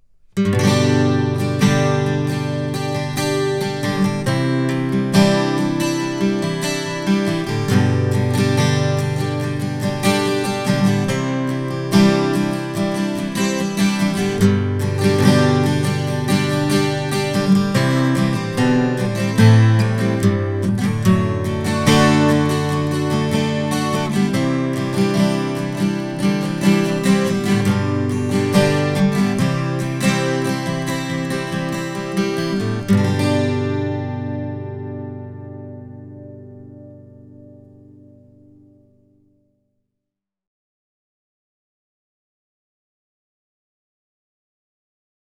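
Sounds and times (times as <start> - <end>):
guitar: 0.0 - 39.6.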